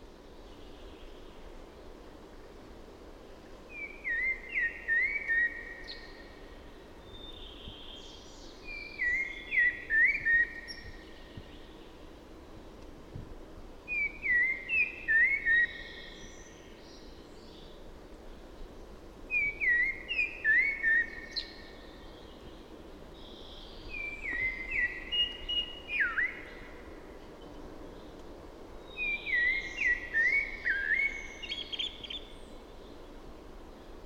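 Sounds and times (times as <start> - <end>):
light hiss: 0.0 - 34.0
common blackbird singing: 3.7 - 6.1, 8.7 - 10.9, 13.9 - 16.5, 19.3 - 21.7, 23.3 - 26.7, 28.9 - 32.5.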